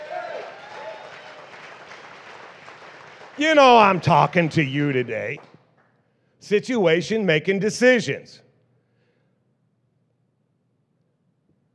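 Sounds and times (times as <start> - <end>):
audience clapping: 0.0 - 6.0
speech: 3.4 - 5.5, 6.4 - 8.4.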